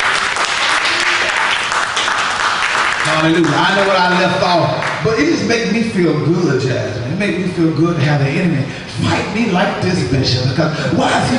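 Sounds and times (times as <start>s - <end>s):
audience clapping hands: 0.0s - 5.1s
speech: 3.2s - 11.3s.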